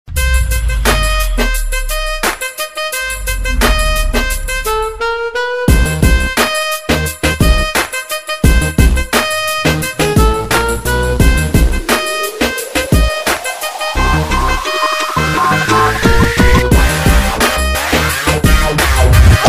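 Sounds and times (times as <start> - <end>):
ringtone music: 0.1 - 19.3.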